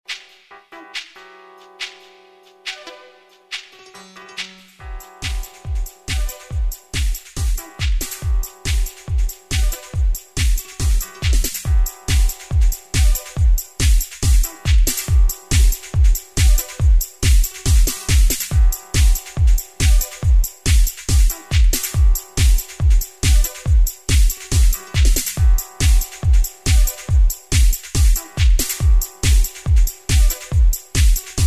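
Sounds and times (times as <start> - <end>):
groove music: 0.1 - 31.4.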